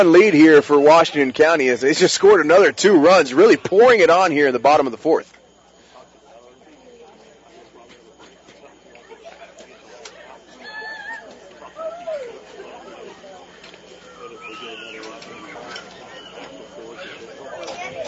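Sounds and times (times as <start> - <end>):
speech: 0.0 - 5.4
Washington County crowd cheering at a softball game: 10.3 - 17.4.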